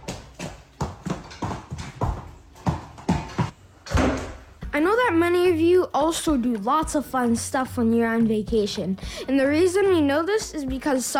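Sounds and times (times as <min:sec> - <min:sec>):
loud footsteps from upstairs neighbours: 0:00.0 - 0:04.8
speech: 0:04.8 - 0:11.1.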